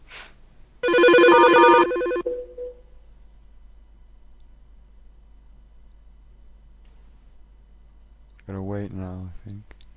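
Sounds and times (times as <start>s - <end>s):
telephone dial tone: 0.8s - 2.6s.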